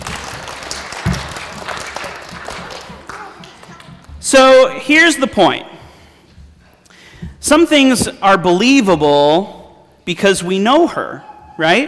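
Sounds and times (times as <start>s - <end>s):
crowd applauding: 0.0s - 4.1s
speech: 4.3s - 5.7s, 7.4s - 11.8s.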